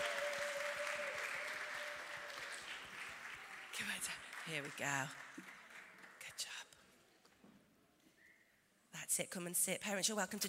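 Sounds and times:
audience cheering: 0.0 - 3.8
audience applause: 0.0 - 6.3
speech: 4.5 - 5.5, 9.2 - 10.4.

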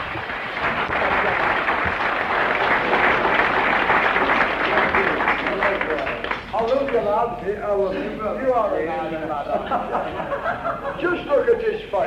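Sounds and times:
audience clapping: 0.0 - 7.2
laughter: 0.6 - 1.8, 9.2 - 11.6
speech: 7.2 - 12.0.

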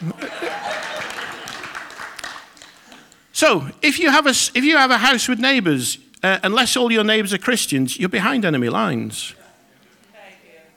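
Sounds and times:
laughter: 0.0 - 1.9
audience applause: 0.0 - 3.1
speech: 3.4 - 9.4.

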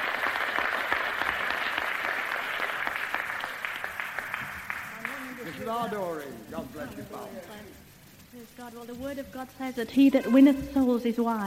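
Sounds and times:
audience clapping for a speaker: 0.0 - 8.3
speech: 5.7 - 11.4.

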